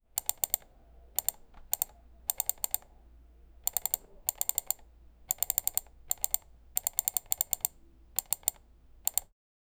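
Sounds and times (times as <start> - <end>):
computer: 0.1 - 9.3.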